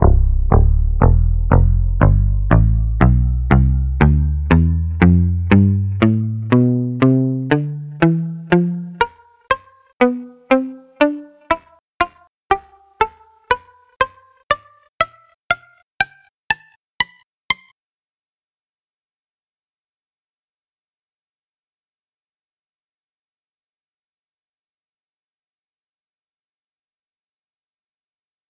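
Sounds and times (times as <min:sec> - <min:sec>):
palm-muted guitar scale: 0:00.0 - 0:17.7.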